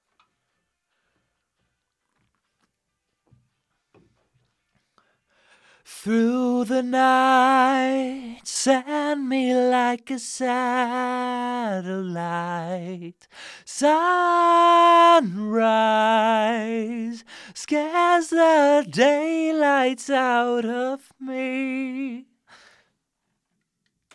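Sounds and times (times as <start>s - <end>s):
vocals: 5.4s - 22.9s.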